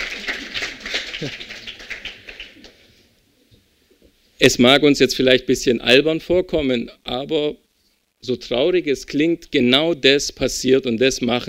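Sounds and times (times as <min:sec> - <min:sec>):
single person clapping: 0:00.0 - 0:02.8
speech: 0:01.2 - 0:01.5, 0:04.4 - 0:07.6, 0:08.2 - 0:11.4.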